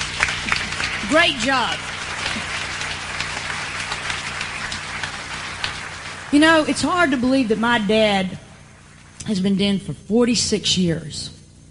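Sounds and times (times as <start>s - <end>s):
audience applause: 0.0s - 9.1s
speech: 1.1s - 1.9s, 6.3s - 8.4s, 9.2s - 11.4s.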